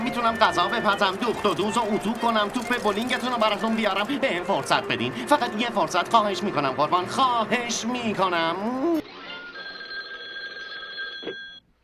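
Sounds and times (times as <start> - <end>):
speech: 0.1 - 9.0
telephone ringing in the Flintstone house: 9.1 - 11.6.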